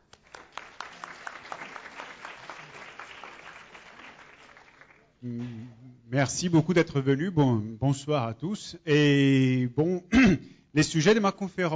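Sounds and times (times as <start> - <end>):
audience applause: 0.0 - 5.2
speech: 5.2 - 11.7.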